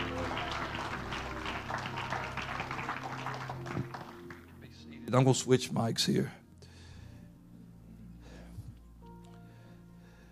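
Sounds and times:
crowd clapping: 0.0 - 4.7
speech: 5.1 - 6.4.

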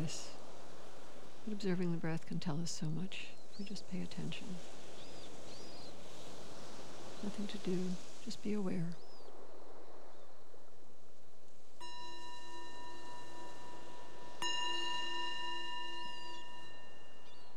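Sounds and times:
speech: 0.0 - 0.4, 1.5 - 4.8, 7.2 - 9.0
meditation bell: 11.8 - 17.5.

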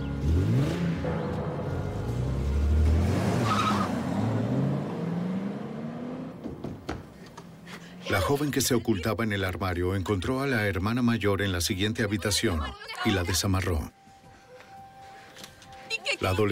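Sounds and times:
car engine revving and pulling away: 0.1 - 6.4
tires squealing: 2.9 - 4.7
speech: 8.3 - 14.0, 16.2 - 16.5.

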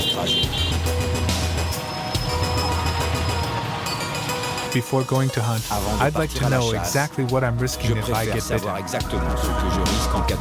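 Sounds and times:
busy city street traffic roar: 0.0 - 6.9
speech: 0.2 - 0.6, 4.7 - 10.3.

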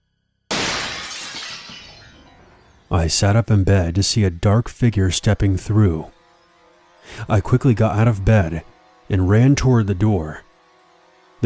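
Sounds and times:
window glass shattering: 0.5 - 2.8
speech: 2.9 - 6.2, 7.1 - 10.4.

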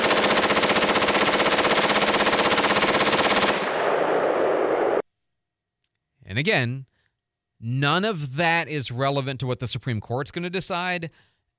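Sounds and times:
fully automatic M16 rifle fired on full auto: 0.0 - 5.0
speech: 6.4 - 6.9, 7.6 - 11.3.

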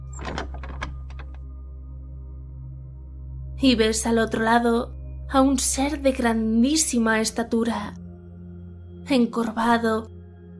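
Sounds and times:
door opening: 0.0 - 1.4
speech: 3.6 - 8.0, 9.1 - 10.2.

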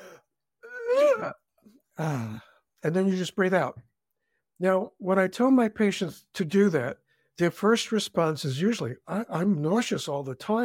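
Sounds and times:
man gagging with finger down throat: 0.0 - 1.4
speech: 1.2 - 3.9, 4.6 - 10.6.

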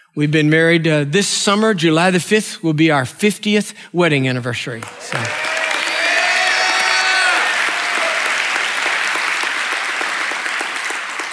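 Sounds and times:
speech: 0.2 - 5.4
audience applause: 4.8 - 11.3.

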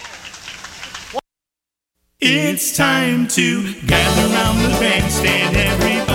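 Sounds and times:
audience applause: 0.0 - 1.2
speech: 2.2 - 6.0.

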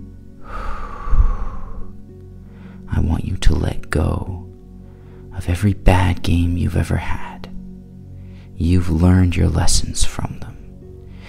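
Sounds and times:
long breathy exhale during a meditation for footballers: 0.4 - 2.8
speech: 3.5 - 4.4, 5.4 - 7.3, 8.6 - 10.6.

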